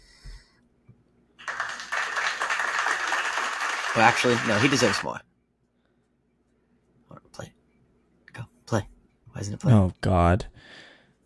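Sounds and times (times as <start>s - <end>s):
clapping sound effect: 1.4s - 5.1s
speech: 4.0s - 5.3s, 8.7s - 10.8s.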